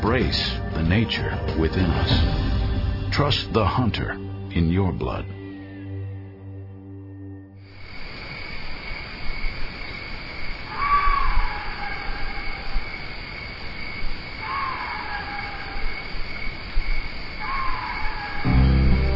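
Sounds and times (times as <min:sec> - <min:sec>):
speech: 0:00.0 - 0:05.4
old Axis bull calling at night in summertime: 0:10.7 - 0:12.7, 0:14.4 - 0:16.0, 0:17.4 - 0:19.0.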